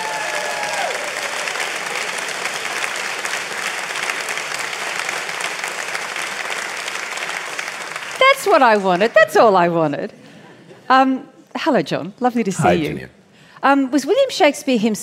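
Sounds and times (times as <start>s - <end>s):
audience applause: 0.0s - 9.3s
speech: 8.4s - 10.2s, 10.9s - 15.0s.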